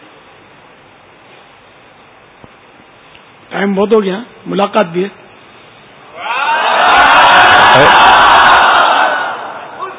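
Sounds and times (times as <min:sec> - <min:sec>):
speech: 0:03.5 - 0:05.2
large crowd at an Islamic religious gathering shouting a religious slogan: 0:06.2 - 0:09.9.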